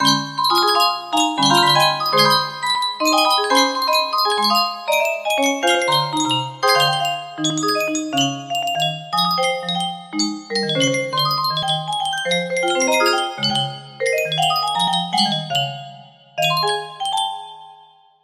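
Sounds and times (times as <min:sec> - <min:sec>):
music box melody: 0:00.0 - 0:18.2.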